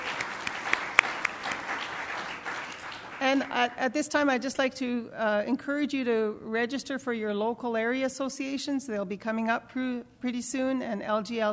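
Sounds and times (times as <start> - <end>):
audience applause: 0.0 - 3.6
speech: 3.3 - 11.5.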